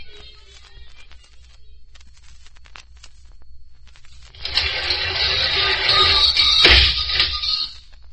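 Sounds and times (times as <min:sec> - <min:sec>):
noisy garage door opening: 0:04.4 - 0:07.7.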